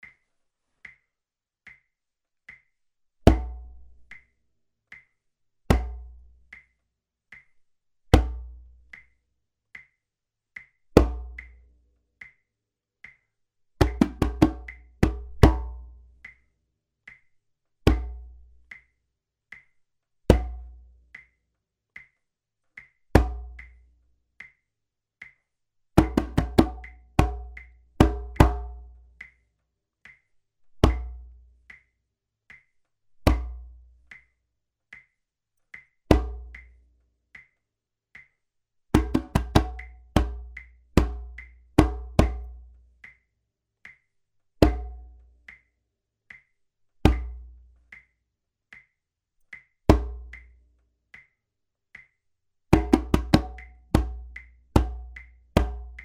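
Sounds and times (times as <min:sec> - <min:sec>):
bass: 0:03.2 - 0:04.3, 0:05.7 - 0:06.6, 0:08.1 - 0:09.1, 0:10.9 - 0:12.0, 0:13.8 - 0:16.5, 0:17.8 - 0:18.8, 0:20.3 - 0:21.2, 0:23.1 - 0:24.0, 0:26.0 - 0:29.5, 0:30.8 - 0:31.8, 0:33.2 - 0:34.1, 0:36.1 - 0:37.0, 0:38.9 - 0:43.1, 0:44.6 - 0:45.6, 0:47.0 - 0:48.0, 0:49.9 - 0:50.7, 0:52.7 - 0:56.0.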